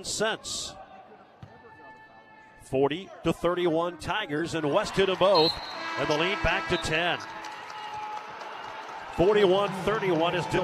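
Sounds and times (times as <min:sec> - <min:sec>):
speech: 0:00.0 - 0:00.8, 0:02.7 - 0:07.4, 0:09.2 - 0:10.6
fans applauding in a basketball arena: 0:04.8 - 0:10.6.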